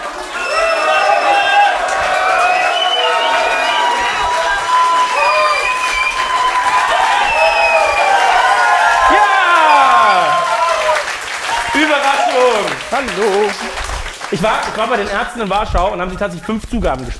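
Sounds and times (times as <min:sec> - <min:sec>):
crowd shouting and cheering: 0:00.0 - 0:15.3
speech: 0:13.0 - 0:17.1.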